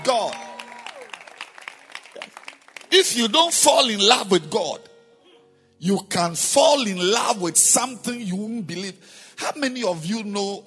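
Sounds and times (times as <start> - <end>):
audience clapping hands: 0.0 - 3.6
speech: 2.9 - 4.9, 5.8 - 10.6.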